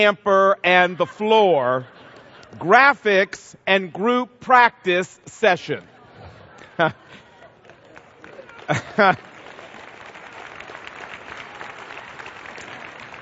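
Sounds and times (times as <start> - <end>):
speech: 0.0 - 5.9, 6.8 - 7.1, 8.7 - 9.3
laughter: 0.6 - 3.3, 5.6 - 9.8
audience clapping: 6.6 - 13.2.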